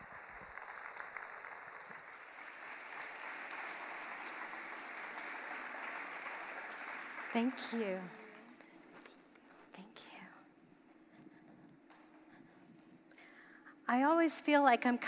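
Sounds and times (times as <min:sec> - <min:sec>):
audience applause: 0:00.0 - 0:08.6
speech: 0:07.4 - 0:08.2, 0:13.9 - 0:15.0.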